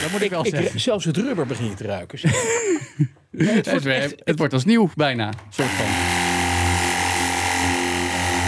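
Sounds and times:
cordless high-pressure washer running: 0.0 - 0.4, 5.6 - 8.4
laughter: 0.0 - 1.1, 2.2 - 4.2
speech: 0.1 - 6.1.

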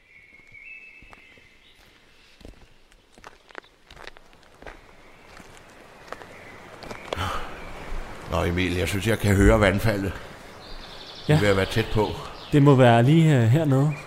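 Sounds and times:
footsteps crunching at a walking pace: 0.3 - 7.2
speech: 8.3 - 10.3, 11.3 - 14.0.

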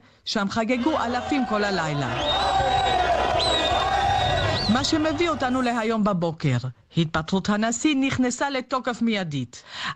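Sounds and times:
speech: 0.3 - 3.6, 4.7 - 9.9
lawmakers cheering and applauding: 0.8 - 5.7
shrill sustained whistle-like tones: 2.2 - 4.9.

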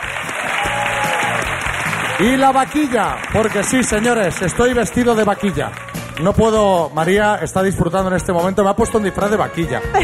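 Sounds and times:
audience applause: 0.0 - 6.5
speech: 2.2 - 10.0.

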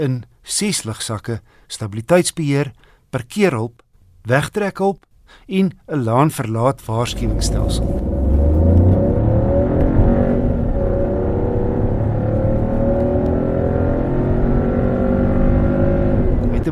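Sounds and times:
speech: 0.0 - 8.2
three-cylinder turbo petrol engine revving: 7.0 - 16.7.

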